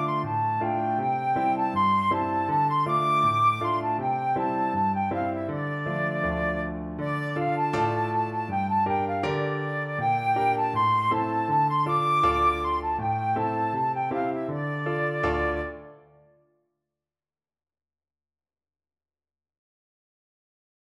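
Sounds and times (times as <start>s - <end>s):
flute: 0.0s - 16.4s.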